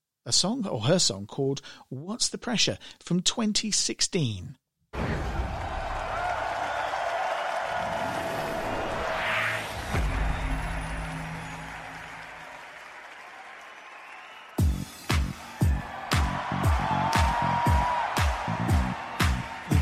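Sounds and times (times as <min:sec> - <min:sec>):
speech: 0:00.2 - 0:05.2
live concert crowd cheering and applauding: 0:05.0 - 0:19.8.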